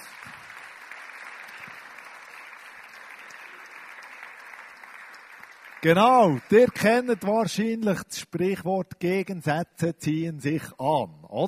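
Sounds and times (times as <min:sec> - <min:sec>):
audience applause: 0:00.0 - 0:07.8
speech: 0:05.8 - 0:11.4.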